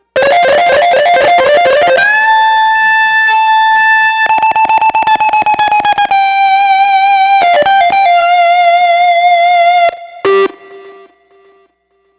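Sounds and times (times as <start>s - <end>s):
grunge lead: 0.0s - 11.1s.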